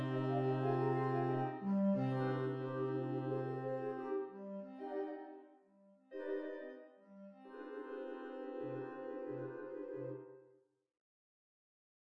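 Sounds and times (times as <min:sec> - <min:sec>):
clarinet: 0:00.0 - 0:05.4, 0:06.2 - 0:10.2.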